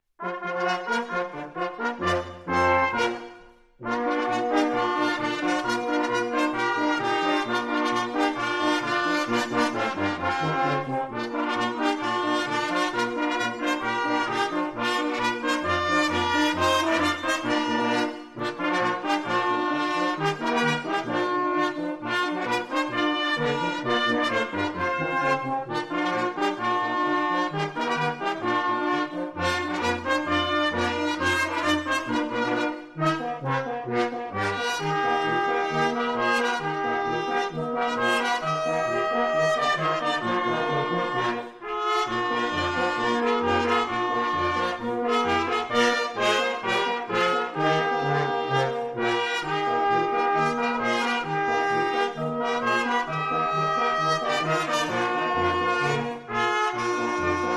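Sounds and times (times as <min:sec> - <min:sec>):
fanfare: 0:00.2 - 0:57.5.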